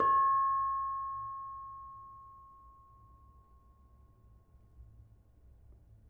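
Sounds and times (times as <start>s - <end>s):
bonang barung gamelan gong chime: 0.0s - 3.8s.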